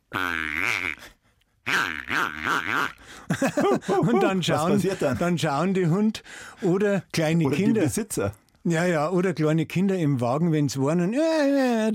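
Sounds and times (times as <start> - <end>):
squeaker from a squeaky toy pig honking: 0.1 - 1.1, 1.7 - 3.0
speech: 2.2 - 11.9
laughter: 3.3 - 5.5, 7.5 - 8.1.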